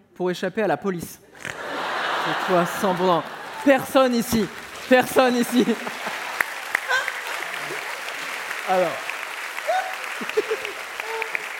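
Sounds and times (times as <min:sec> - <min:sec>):
speech: 0:00.2 - 0:01.5, 0:02.3 - 0:06.2, 0:08.7 - 0:09.1
laughter: 0:01.4 - 0:08.4, 0:09.5 - 0:11.5
audience applause: 0:01.5 - 0:11.5.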